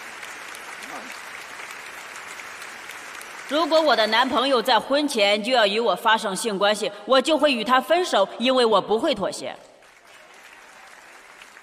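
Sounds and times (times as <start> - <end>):
audience applause: 0.0 - 4.4, 9.8 - 11.6
speech: 3.5 - 9.7.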